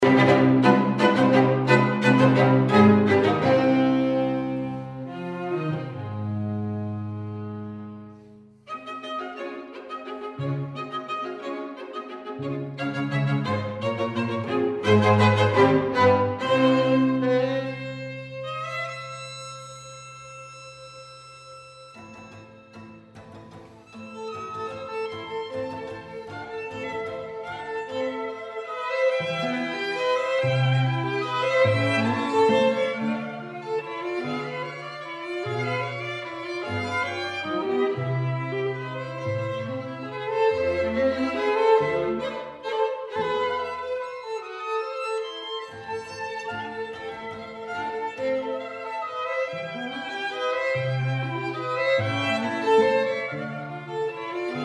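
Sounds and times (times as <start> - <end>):
waltz music: 0.0 - 54.6.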